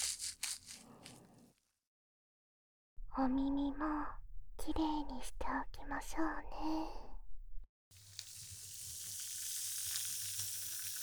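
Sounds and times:
low rumble: 3.0 - 7.7
speech: 3.2 - 7.1
carbonated foam fizzing: 8.0 - 11.0.

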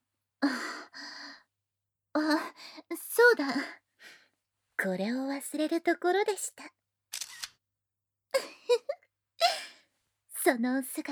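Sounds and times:
speech: 2.2 - 3.8, 4.8 - 6.8, 10.5 - 11.0
camera shutter click as a photo is taken: 7.1 - 7.5.

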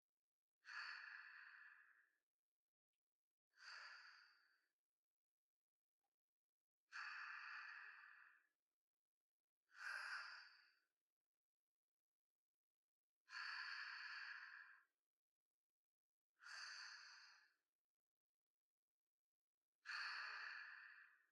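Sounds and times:
sleep breathing ASMR: 0.7 - 2.2, 3.6 - 4.7, 6.9 - 8.5, 9.8 - 10.8, 13.3 - 14.9, 16.4 - 17.6, 19.9 - 21.3.

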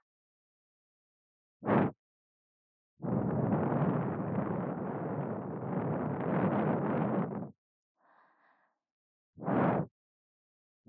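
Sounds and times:
blowing into the right ear: 1.7 - 1.9, 3.1 - 7.5, 9.4 - 9.9.

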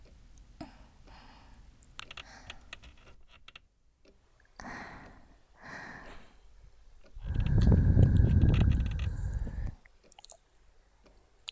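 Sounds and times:
breathing: 0.6 - 2.9, 4.6 - 6.5, 7.2 - 9.8.

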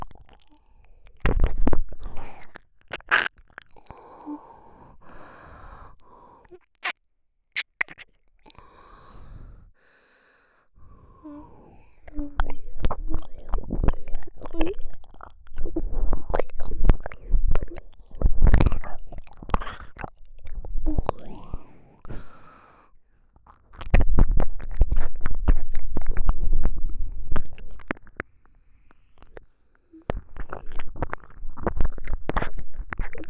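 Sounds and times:
ear licking: 0.0 - 5.4, 11.1 - 21.6, 23.4 - 33.2.

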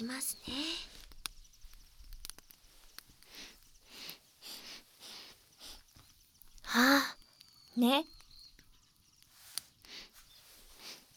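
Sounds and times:
speech: 0.0 - 0.9, 7.8 - 8.2
faint clicks: 0.0 - 4.6, 5.6 - 10.0
person sniffing a scent: 3.3 - 5.8.

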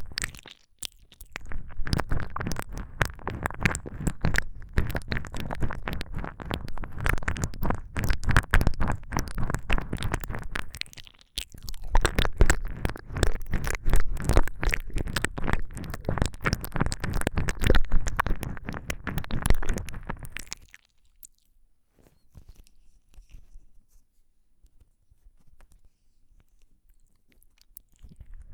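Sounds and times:
wet squelching ear licking ASMR: 0.0 - 21.4.

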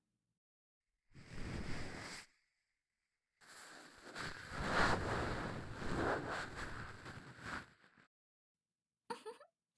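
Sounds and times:
ASMR ear cleaning sounds in the left ear: 1.2 - 2.2, 3.4 - 7.9.

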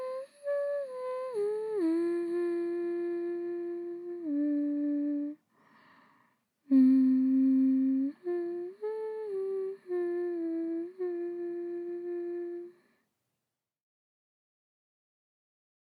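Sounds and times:
person singing a lullaby: 0.0 - 5.4, 6.7 - 13.0.

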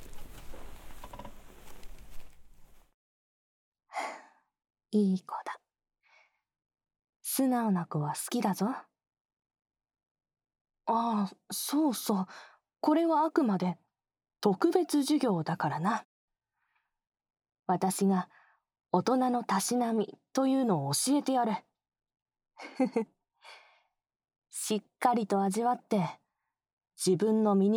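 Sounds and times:
adult woman's teasing voice: 4.9 - 5.6, 7.2 - 8.9, 10.9 - 13.8, 14.4 - 16.1, 17.7 - 18.3, 19.0 - 21.7, 24.6 - 26.2, 27.0 - 27.7.

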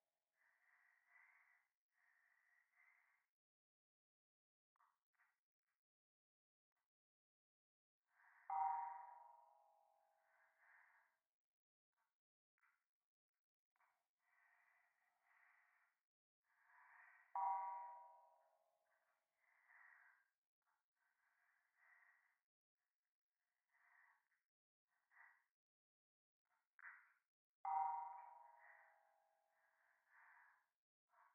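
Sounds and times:
breathing in the right ear: 0.3 - 3.4, 8.1 - 11.3, 13.8 - 22.5, 23.6 - 25.6, 26.5 - 31.3.

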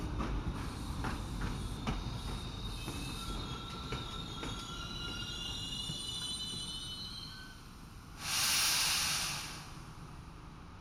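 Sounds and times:
train braking to a stop: 0.2 - 10.4
air brakes hissing: 8.1 - 10.3.

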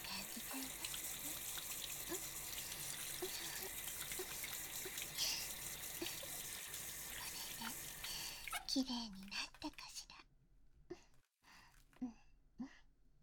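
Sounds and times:
shower water rinsing off foam: 0.0 - 8.7
water splashes and drips: 0.0 - 9.8
speech: 8.7 - 9.8.

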